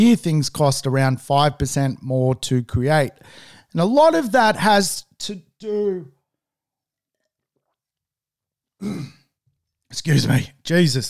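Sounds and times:
speech: 0:00.0 - 0:06.2, 0:08.8 - 0:09.2, 0:09.9 - 0:11.0
person choking cough: 0:08.8 - 0:09.3.

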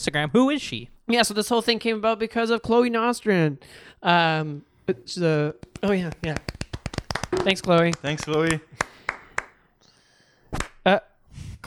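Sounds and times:
speech: 0:00.0 - 0:06.6, 0:07.3 - 0:08.8, 0:10.5 - 0:11.6
hand claps: 0:05.6 - 0:09.6.

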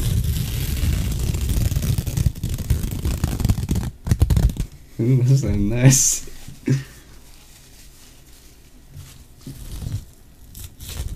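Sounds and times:
ripping and tearing at the microphone, ASMR: 0:00.0 - 0:04.7, 0:09.4 - 0:11.1
speech: 0:05.0 - 0:06.9.

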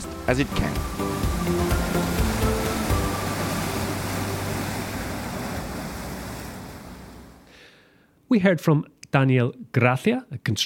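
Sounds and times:
waves crashing onto the rocks: 0:00.0 - 0:07.4
speech: 0:00.3 - 0:02.2, 0:08.3 - 0:10.6.

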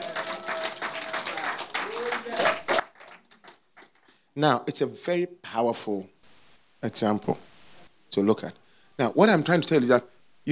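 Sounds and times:
audience clapping: 0:00.0 - 0:04.2
speech: 0:04.4 - 0:06.2, 0:06.8 - 0:07.5, 0:08.1 - 0:10.5.

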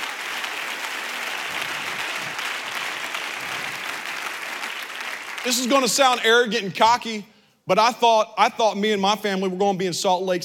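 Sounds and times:
audience hand clapping: 0:00.0 - 0:06.2
speech: 0:05.4 - 0:10.4.

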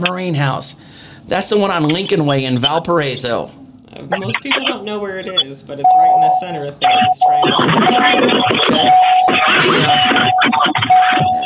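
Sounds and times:
speech: 0:00.0 - 0:11.4
car seatbelt warning chime: 0:05.8 - 0:11.4.

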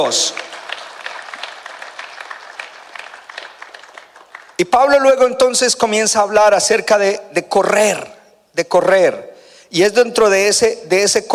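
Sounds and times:
speech: 0:00.0 - 0:00.5, 0:04.6 - 0:11.3
audience applause: 0:00.0 - 0:04.6.

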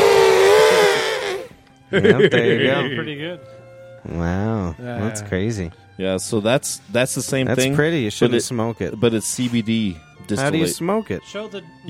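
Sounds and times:
person imitating an elephant trumpeting: 0:00.0 - 0:01.6
laughter: 0:01.9 - 0:03.2
speech: 0:01.9 - 0:11.8.

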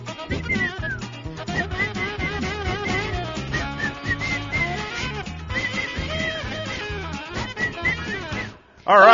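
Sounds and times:
person whistling a tune: 0:00.2 - 0:08.6.

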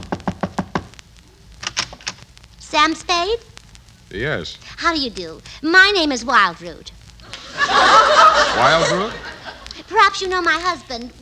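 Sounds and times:
knocking on a door: 0:00.0 - 0:00.9
speech: 0:02.7 - 0:03.5, 0:04.1 - 0:07.0, 0:08.6 - 0:09.3, 0:09.9 - 0:11.2
laughter: 0:07.2 - 0:10.3.

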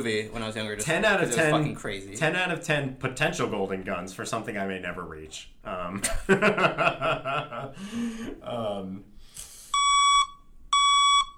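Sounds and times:
speech: 0:00.0 - 0:09.1
laughter: 0:05.7 - 0:08.4
truck backing up warning beeps: 0:09.8 - 0:11.3.

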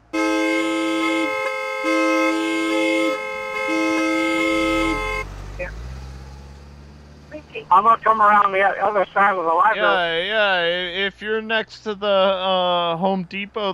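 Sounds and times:
car horn honking: 0:00.0 - 0:05.8
street traffic rumble: 0:00.0 - 0:13.7
speech: 0:07.7 - 0:13.7.

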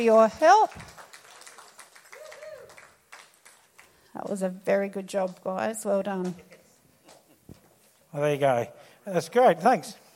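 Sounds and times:
speech: 0:00.0 - 0:00.9, 0:04.2 - 0:06.5, 0:08.1 - 0:10.0
audience applause: 0:00.0 - 0:04.0.

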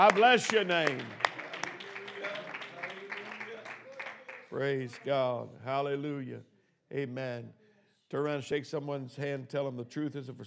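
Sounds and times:
speech: 0:00.0 - 0:01.2, 0:04.5 - 0:10.4
audience clapping hands in praise: 0:00.0 - 0:05.2.

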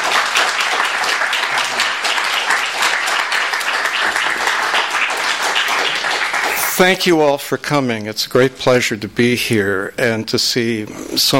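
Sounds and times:
audience applause: 0:00.0 - 0:07.2
speech: 0:06.8 - 0:11.3.

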